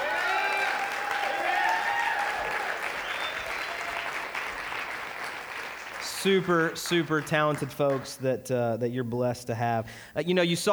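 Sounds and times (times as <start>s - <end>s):
audience clapping for pastors: 0.0s - 8.4s
speech: 6.2s - 10.7s.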